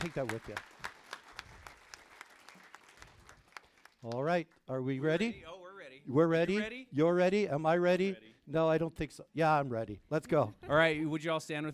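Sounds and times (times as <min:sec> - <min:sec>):
speech: 0:00.0 - 0:00.8, 0:04.0 - 0:11.7
audience applause at an Awana youth gathering: 0:00.0 - 0:04.0.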